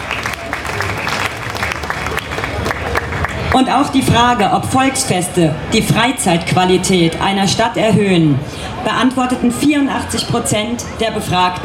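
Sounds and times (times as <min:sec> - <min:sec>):
audience applause: 0:00.0 - 0:03.6
speech: 0:03.6 - 0:11.6.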